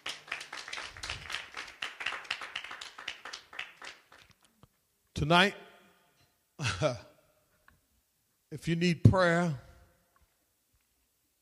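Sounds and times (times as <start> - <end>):
audience hand clapping: 0.0 - 4.5
speech: 5.2 - 5.6, 6.6 - 7.1, 8.5 - 9.6.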